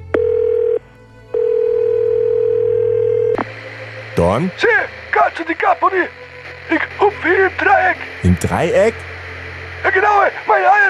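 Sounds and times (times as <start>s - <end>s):
phone line ringing tone: 0.1s - 3.4s
speech: 4.2s - 9.1s, 9.8s - 10.8s.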